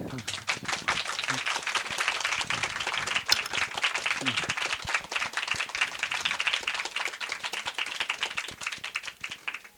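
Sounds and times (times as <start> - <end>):
laughter: 0.0 - 9.6
audience applause: 0.0 - 9.7
faint voices: 0.0 - 9.7.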